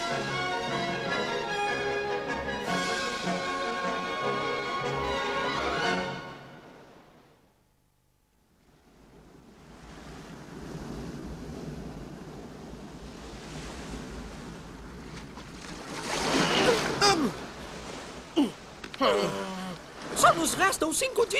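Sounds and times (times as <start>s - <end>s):
surging waves of a storm at sea: 0.0s - 7.4s, 8.5s - 21.3s
howling wind of a storm at sea: 8.6s - 21.3s
speech: 20.5s - 21.3s.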